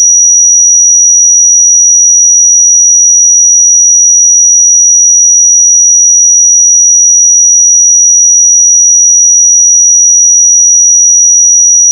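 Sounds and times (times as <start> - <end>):
pure sine tone at 5807 Hz: 0.0 - 11.9.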